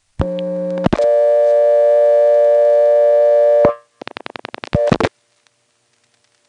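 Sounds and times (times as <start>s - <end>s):
steady tone on a step-by-step telephone exchange: 0.2s - 3.9s, 4.8s - 5.1s.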